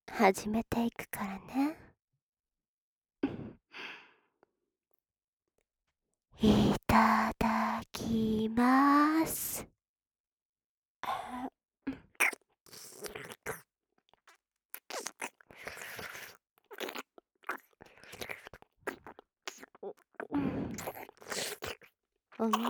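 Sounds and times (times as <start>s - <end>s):
speech: 0.2s - 1.8s, 6.4s - 7.4s, 8.1s - 9.7s, 22.4s - 22.6s
wet ear licking and slurping in an ASMR session: 12.2s - 22.6s.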